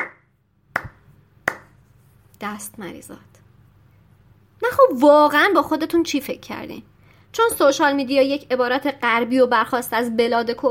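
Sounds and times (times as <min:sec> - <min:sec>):
one person clapping slowly in a dark hall: 0:00.0 - 0:00.2, 0:00.8 - 0:01.8
speech: 0:02.4 - 0:03.4, 0:04.6 - 0:10.6.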